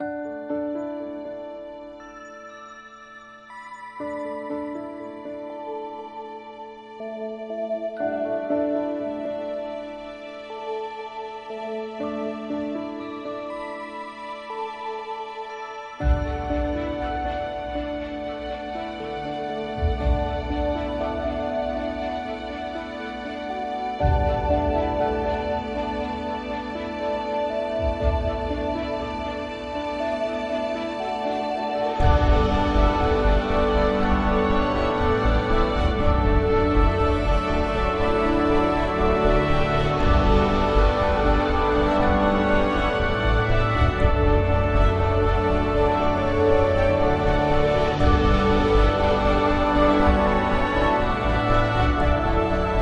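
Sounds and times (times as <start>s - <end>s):
ambient music: 0.0s - 52.8s.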